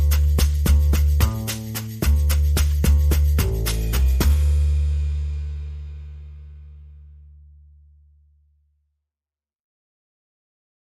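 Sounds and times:
drums: 0.0 - 6.8
bass: 0.0 - 9.0.

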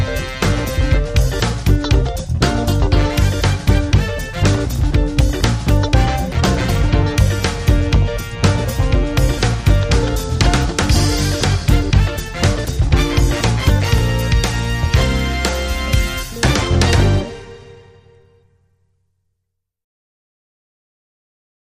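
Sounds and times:
beat drop: 0.0 - 17.3.

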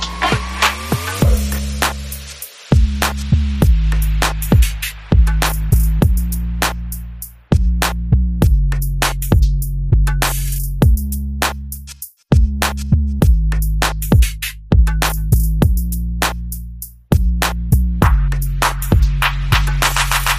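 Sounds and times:
sound effects: 0.0 - 3.7
bass: 0.0 - 20.3
drums: 0.0 - 20.3.

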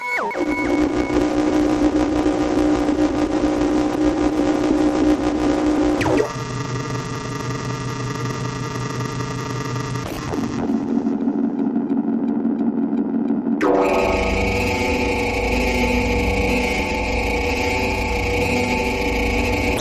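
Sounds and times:
pulsing music: 0.2 - 19.7.

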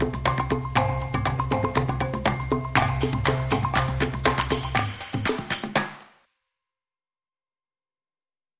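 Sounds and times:
pizzicato rhythm: 0.0 - 6.3.

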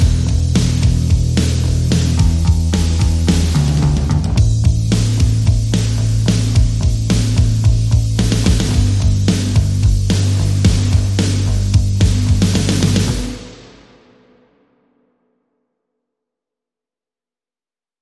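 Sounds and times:
bass: 0.0 - 13.8
drums: 0.0 - 15.3.

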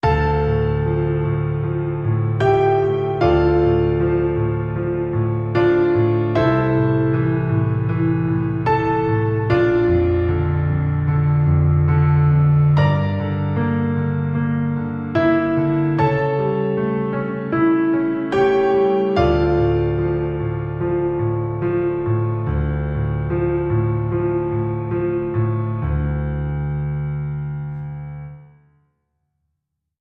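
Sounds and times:
piano: 0.0 - 29.2.

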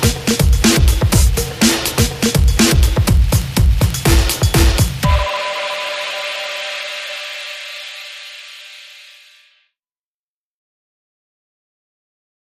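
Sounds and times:
guitar beat: 0.0 - 7.4.

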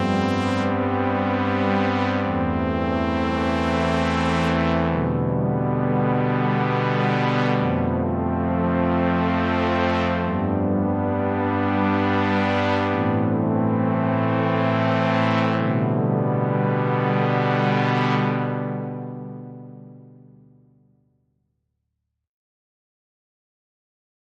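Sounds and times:
music mix: 0.0 - 20.8.

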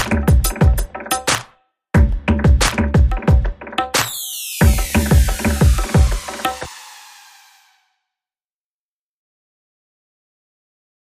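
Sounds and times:
music beat: 0.0 - 7.8.

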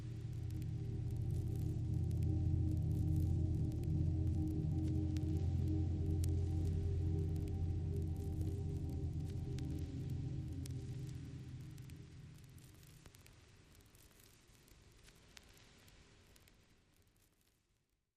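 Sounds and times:
synth pads: 0.0 - 12.7.

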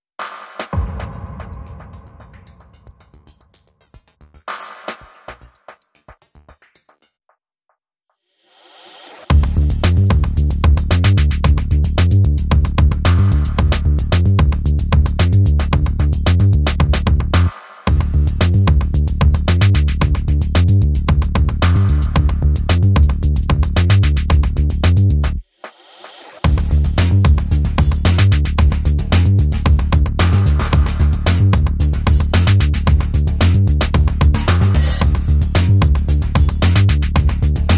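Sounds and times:
drums: 0.1 - 7.2, 8.5 - 37.7
bass: 9.3 - 25.4, 26.5 - 37.7.

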